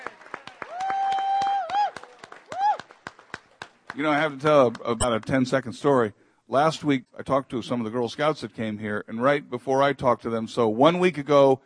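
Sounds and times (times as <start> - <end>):
audience applause for volunteers: 0.0 - 4.1
speech: 4.0 - 11.6.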